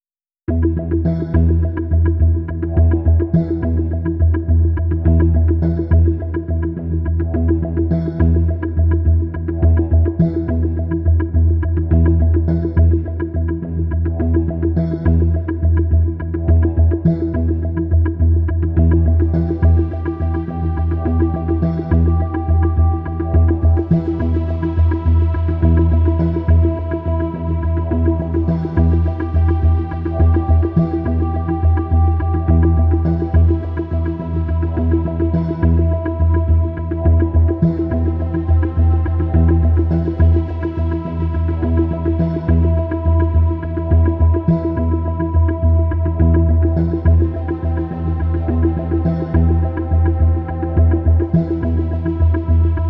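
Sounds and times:
tension music: 0:00.5 - 0:52.8.

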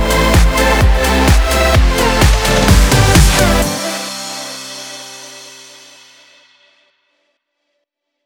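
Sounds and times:
electronic house techno music: 0:00.0 - 0:06.0.

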